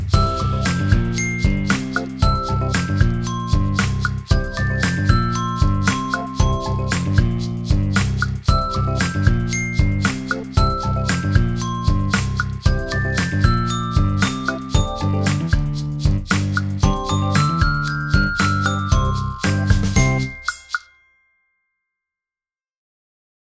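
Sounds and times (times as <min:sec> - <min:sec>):
accompaniment: 0:00.2 - 0:20.8
chime bars: 0:00.2 - 0:21.4.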